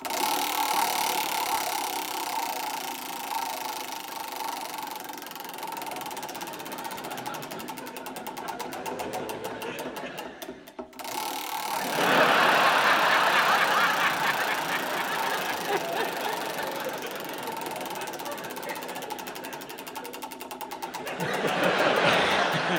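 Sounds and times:
wheel of fortune spinning: 0.0s - 22.7s
laughter: 5.6s - 22.7s.

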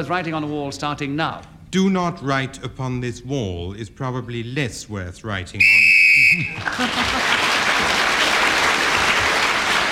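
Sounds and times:
speech: 0.0s - 7.4s
whistle signalling time is up: 5.6s - 6.6s
laughter: 6.2s - 9.8s.

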